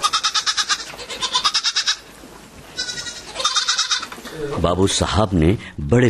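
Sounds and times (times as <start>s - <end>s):
goat bleating: 0.0s - 2.1s, 2.7s - 4.6s
speech: 4.4s - 6.0s.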